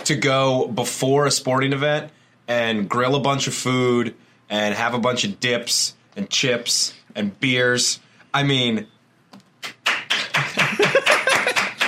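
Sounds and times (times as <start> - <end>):
speech: 0.1 - 9.0
short burst of applause: 9.6 - 11.8
laughter: 10.2 - 11.8.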